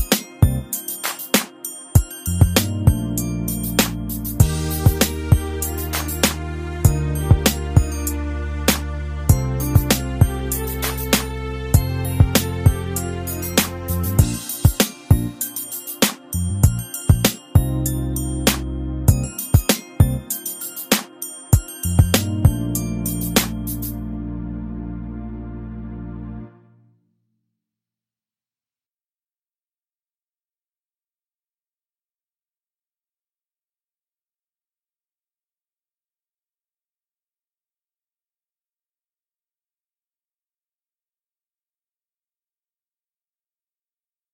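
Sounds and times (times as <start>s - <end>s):
karaoke accompaniment track: 2.3s - 24.0s.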